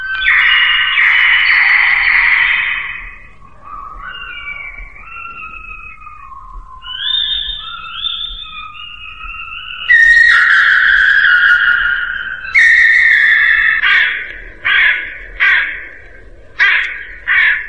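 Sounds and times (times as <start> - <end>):
crow cawing above the roof of a house: 0.0 - 6.0, 9.7 - 17.6
high reedy pipe playing: 0.0 - 17.6.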